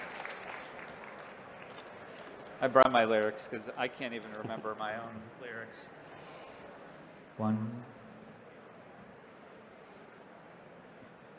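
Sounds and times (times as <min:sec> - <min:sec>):
audience applause: 0:00.0 - 0:03.0
speech: 0:02.6 - 0:06.0, 0:07.4 - 0:07.9.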